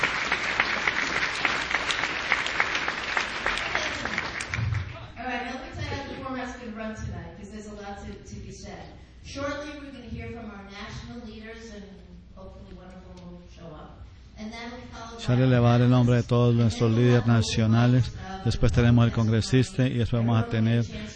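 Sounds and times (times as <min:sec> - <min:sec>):
audience applause: 0:00.0 - 0:05.0
speech: 0:08.8 - 0:10.4, 0:11.6 - 0:21.1.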